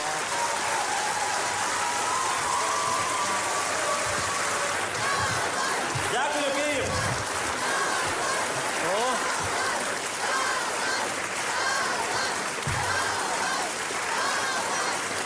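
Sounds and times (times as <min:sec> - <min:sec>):
standing ovation applause at the Kyiv opera: 0:00.0 - 0:15.2
people talking: 0:04.0 - 0:15.0.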